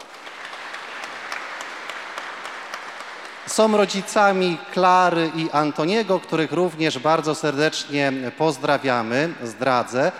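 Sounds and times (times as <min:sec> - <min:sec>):
audience applause: 0:00.0 - 0:04.3
speech: 0:03.5 - 0:10.1.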